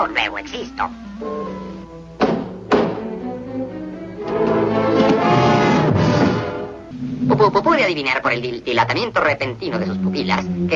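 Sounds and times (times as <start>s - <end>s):
steady musical backdrop: 0.0s - 10.7s
speech: 0.4s - 1.4s, 7.4s - 10.7s
knocking on a door: 2.2s - 3.0s.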